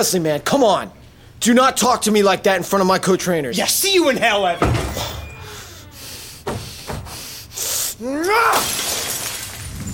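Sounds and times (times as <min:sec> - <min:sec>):
speech: 0:00.0 - 0:05.1, 0:08.0 - 0:08.9
glass fishbowl being smashed: 0:08.4 - 0:09.9.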